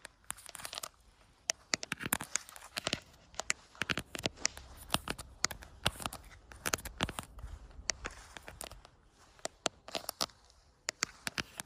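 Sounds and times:
faint crinkly rustle: 0:00.0 - 0:11.6
sharp tapping on an outdoor camera: 0:00.0 - 0:11.6.

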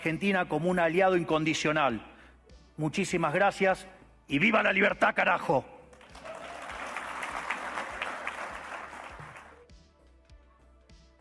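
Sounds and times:
speech: 0:00.0 - 0:02.1, 0:02.8 - 0:05.7
crowd applauding a speech: 0:05.9 - 0:09.6.

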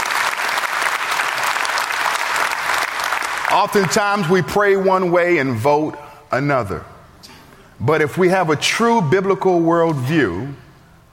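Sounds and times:
audience clapping: 0:00.0 - 0:04.6
speech: 0:03.6 - 0:06.9, 0:07.8 - 0:10.6.

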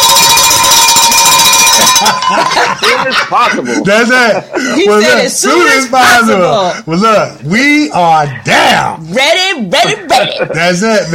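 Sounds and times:
bell ringing: 0:00.0 - 0:03.1
laughter: 0:01.0 - 0:05.3, 0:09.8 - 0:11.1
speech: 0:02.0 - 0:11.1.

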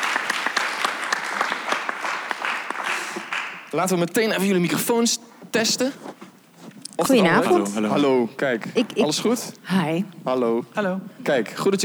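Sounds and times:
audience applause: 0:00.0 - 0:04.2
speech: 0:03.7 - 0:06.2, 0:07.0 - 0:11.8.

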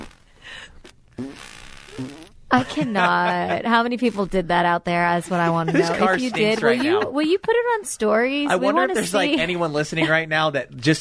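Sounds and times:
person imitating a fart with a buzzing raspberry: 0:00.0 - 0:04.4
speech: 0:02.0 - 0:10.9
laughter: 0:02.5 - 0:03.9, 0:05.3 - 0:07.8, 0:08.5 - 0:10.4.

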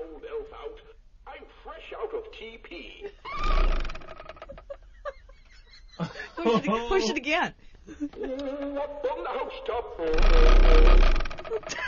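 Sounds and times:
fart noise from plastic outhouse toy: 0:03.4 - 0:04.6, 0:10.0 - 0:11.8
laughter: 0:04.5 - 0:07.2, 0:07.9 - 0:08.8, 0:11.6 - 0:11.8
speech: 0:06.4 - 0:11.8.

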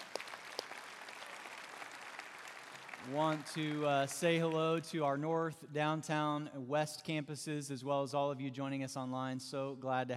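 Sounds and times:
faint audience applause: 0:00.0 - 0:04.7
speech: 0:03.0 - 0:10.1.

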